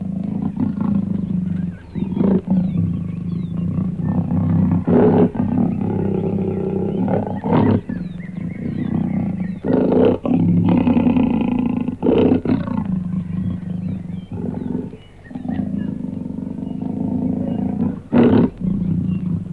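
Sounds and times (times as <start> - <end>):
leopard giving harsh rasping grunts: 0.0 - 19.5.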